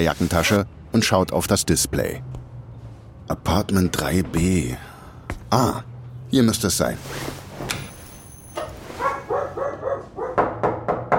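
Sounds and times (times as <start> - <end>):
speech: 0.0 - 2.4, 3.3 - 4.9, 5.5 - 7.3
small dog yipping and barking in a hallway: 8.9 - 10.4
sharp clattering knocks: 10.4 - 11.1.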